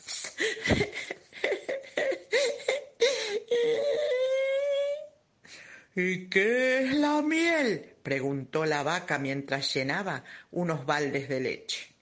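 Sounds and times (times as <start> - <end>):
person acted crying with sobs and wail: 0.1 - 5.2
speech: 0.7 - 1.0, 6.0 - 11.9.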